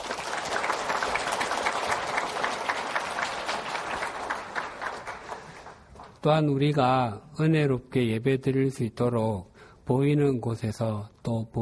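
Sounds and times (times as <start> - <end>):
audience applause: 0.0 - 6.3
speech: 6.2 - 11.5.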